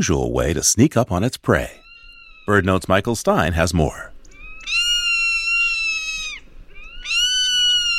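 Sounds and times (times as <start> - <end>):
speech: 0.0 - 1.8, 2.5 - 4.1
zone-tailed hawk whistling screams: 4.4 - 7.9.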